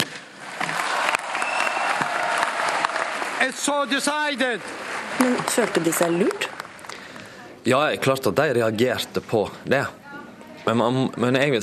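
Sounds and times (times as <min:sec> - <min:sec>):
conference delegates applauding a decision: 0:00.0 - 0:07.4
speech: 0:03.4 - 0:06.5, 0:07.6 - 0:10.0, 0:10.6 - 0:11.6.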